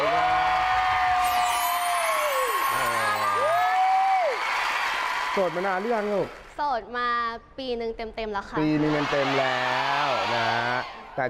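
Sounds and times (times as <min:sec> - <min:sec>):
studio audience cheering: 0:00.0 - 0:06.4, 0:08.6 - 0:11.2
studio audience clapping: 0:00.0 - 0:06.6
speech: 0:05.4 - 0:11.2.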